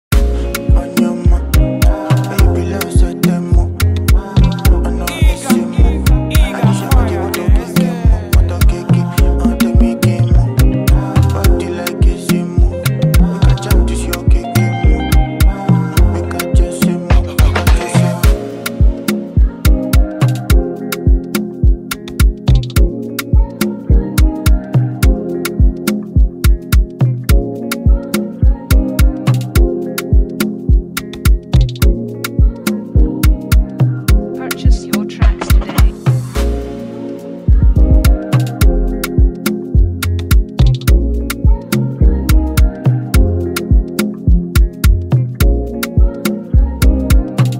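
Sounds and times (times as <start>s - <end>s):
afrobeat and dancehall style beat: 0.1s - 47.5s.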